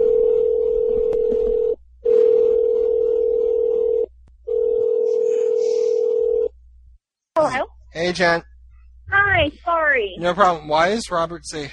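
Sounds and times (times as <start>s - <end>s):
steady low-pitched telephone tone: 0.0s - 6.5s
speech: 7.5s - 8.5s, 9.4s - 11.7s.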